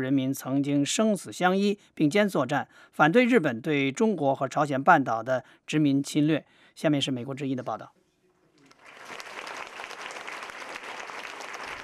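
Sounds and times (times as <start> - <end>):
speech: 0.0 - 8.0
audience applause: 8.7 - 11.8.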